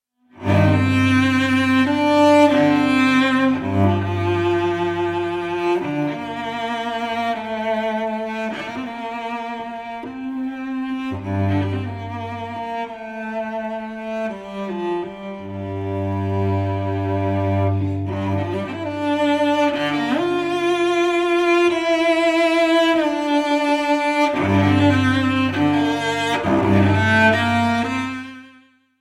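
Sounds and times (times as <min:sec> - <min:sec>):
cello: 0:00.3 - 0:28.9
double bass: 0:00.4 - 0:28.2.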